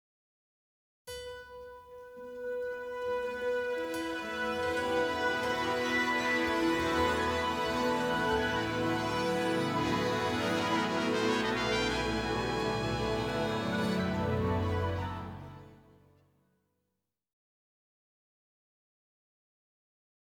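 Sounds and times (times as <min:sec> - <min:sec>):
orchestra tuning: 0:01.8 - 0:16.1.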